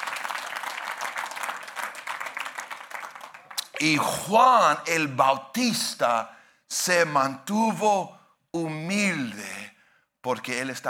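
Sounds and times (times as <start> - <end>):
audience applause: 0.0 - 4.0
speech: 3.8 - 9.6, 10.2 - 10.8.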